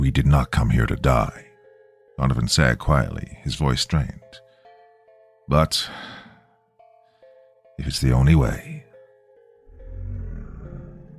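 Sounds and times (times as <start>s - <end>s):
speech: 0.1s - 1.5s, 2.2s - 4.4s, 5.5s - 6.2s, 7.8s - 8.8s
deep guttural roar in a jungle: 9.7s - 11.1s.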